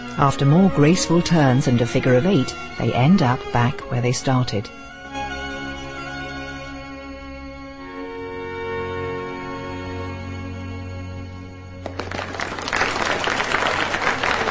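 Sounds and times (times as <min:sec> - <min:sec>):
speech: 0:00.2 - 0:04.9
dancers clapping: 0:11.8 - 0:14.5.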